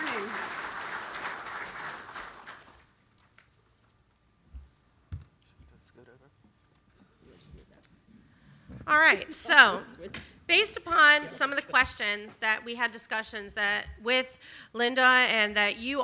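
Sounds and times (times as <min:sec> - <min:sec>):
audience round of applause: 0:00.0 - 0:02.9
speech: 0:08.8 - 0:16.0.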